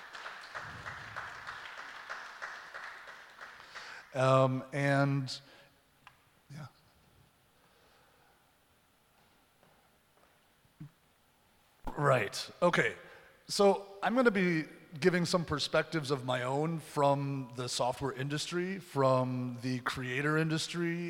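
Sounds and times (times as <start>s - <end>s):
audience applause: 0.0s - 4.0s
speech: 4.1s - 5.5s, 12.0s - 21.0s.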